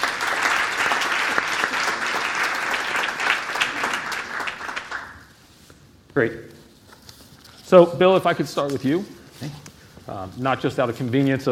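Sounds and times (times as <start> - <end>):
audience applause: 0.0 - 5.3
speech: 6.2 - 6.5, 7.7 - 11.5.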